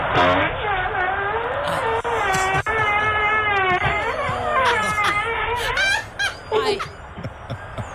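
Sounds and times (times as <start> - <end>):
man farting recorded by video doorbell: 0.2 - 5.6
laughter: 1.6 - 7.9.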